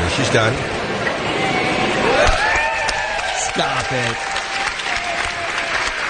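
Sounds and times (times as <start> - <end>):
speech: 0.2 - 0.8, 3.6 - 4.4
hesitant audience applause after song: 2.0 - 6.0.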